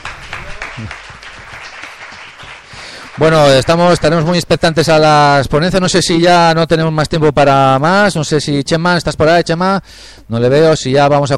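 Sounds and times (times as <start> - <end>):
audience applause after a speaker at a presentation event: 0.0 - 5.1
speech: 0.8 - 1.2, 3.2 - 11.3.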